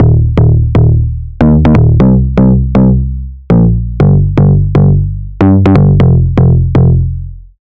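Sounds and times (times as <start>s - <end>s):
bass: 0.0s - 7.7s.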